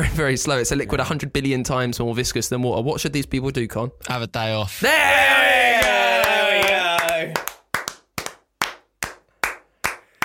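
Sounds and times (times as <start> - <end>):
speech: 0.2 - 6.0
hand clapping: 5.8 - 10.2.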